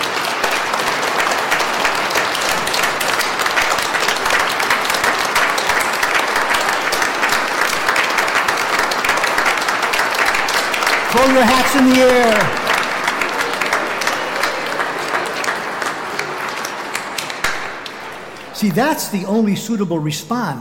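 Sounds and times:
audience clapping: 0:00.0 - 0:19.4
speech: 0:11.3 - 0:12.6, 0:18.6 - 0:20.5.

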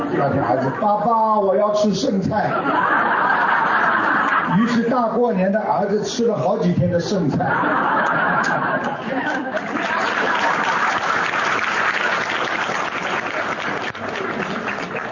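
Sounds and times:
laughter: 0:00.0 - 0:01.4, 0:02.1 - 0:05.9, 0:07.0 - 0:12.2
speech: 0:00.2 - 0:03.8, 0:04.5 - 0:09.8
audience applause: 0:08.0 - 0:15.1.

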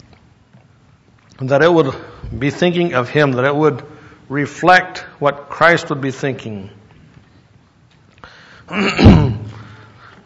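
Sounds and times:
speech: 0:01.4 - 0:06.8, 0:08.7 - 0:09.2
throat clearing during a Bible sermon: 0:08.7 - 0:09.8.

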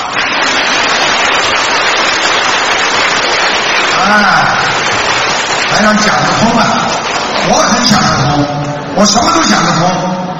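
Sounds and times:
crowd applause: 0:00.0 - 0:08.1
speech: 0:04.0 - 0:04.8, 0:05.8 - 0:10.2.

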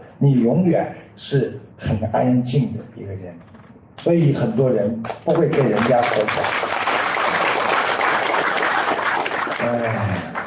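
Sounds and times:
speech: 0:00.2 - 0:06.7, 0:09.6 - 0:10.4
audience applause: 0:05.4 - 0:10.4.

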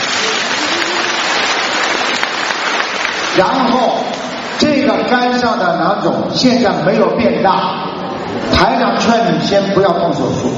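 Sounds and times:
crowd applauding: 0:00.0 - 0:04.7
speech: 0:03.4 - 0:04.2, 0:04.9 - 0:10.5.

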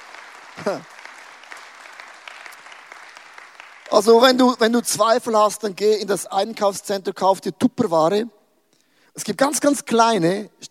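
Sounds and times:
audience applause: 0:00.0 - 0:04.8
speech: 0:00.6 - 0:01.0, 0:03.9 - 0:08.4, 0:09.2 - 0:10.6.

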